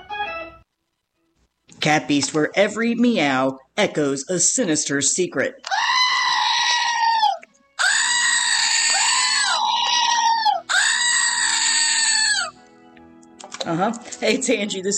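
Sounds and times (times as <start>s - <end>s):
speech: 1.8s - 5.8s, 13.8s - 14.9s
screaming goat novelty toy: 5.6s - 12.6s.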